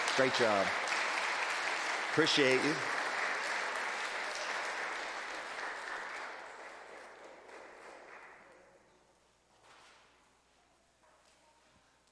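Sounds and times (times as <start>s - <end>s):
audience applause: 0.0s - 8.8s
speech: 0.2s - 0.8s, 2.1s - 3.0s.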